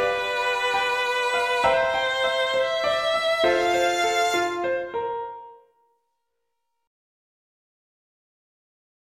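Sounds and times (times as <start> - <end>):
slow four-part melody and harmony: 0.0 - 5.8.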